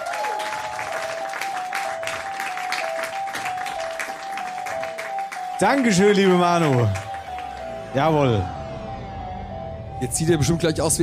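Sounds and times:
audience applause: 0.0s - 7.8s
speech: 5.6s - 7.0s, 7.9s - 8.6s, 10.0s - 11.0s.

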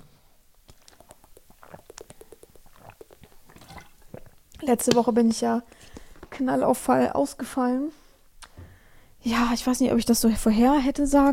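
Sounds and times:
person sipping water: 0.5s - 4.6s
speech: 4.6s - 5.8s, 6.4s - 8.0s, 9.2s - 11.3s.

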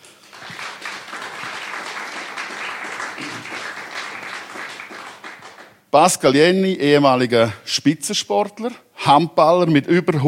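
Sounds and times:
audience applause: 0.0s - 5.8s
speech: 6.0s - 10.2s.

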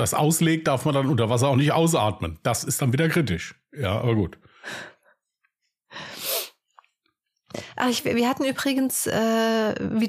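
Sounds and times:
speech: 0.0s - 4.9s, 7.5s - 10.0s
nose sniffing: 6.0s - 6.6s.

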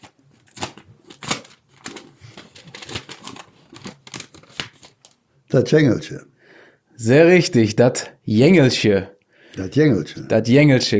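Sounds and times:
paper slip pulled out of a small envelope rustling: 0.0s - 5.2s
speech: 5.5s - 6.3s, 7.0s - 10.9s.

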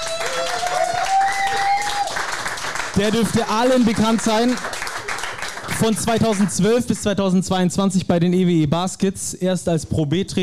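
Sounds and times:
audience applause: 0.0s - 7.0s
speech: 3.0s - 4.7s, 5.8s - 10.4s.

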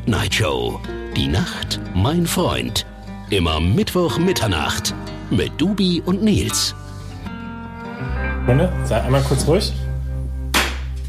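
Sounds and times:
speech: 0.0s - 6.8s, 8.0s - 9.8s
clapper slate clap for synchronizing: 10.5s - 11.0s.

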